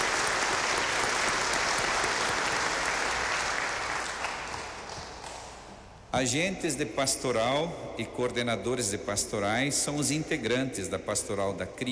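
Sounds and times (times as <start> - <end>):
audience applause: 0.0 - 5.2
speech: 6.2 - 11.9.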